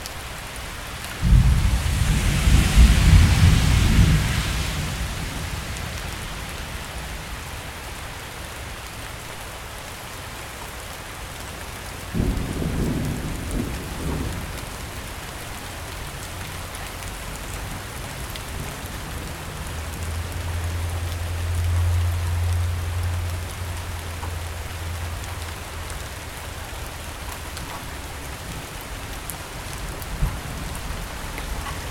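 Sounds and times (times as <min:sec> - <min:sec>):
light rain: 0:00.0 - 0:31.8
thunder: 0:01.2 - 0:06.9, 0:12.2 - 0:15.4, 0:30.0 - 0:31.8.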